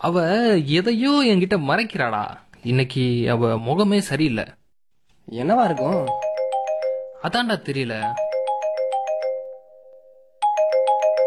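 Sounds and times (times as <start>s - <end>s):
speech: 0.0s - 4.6s, 5.3s - 6.2s, 7.2s - 8.2s
phone ringing with a bright electronic ringtone: 5.4s - 11.2s.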